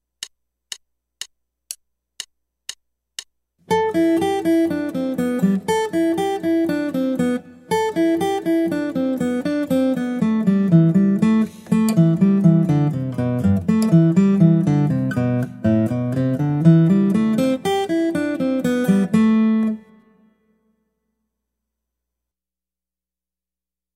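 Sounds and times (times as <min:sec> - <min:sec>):
guitar: 0:03.6 - 0:20.8.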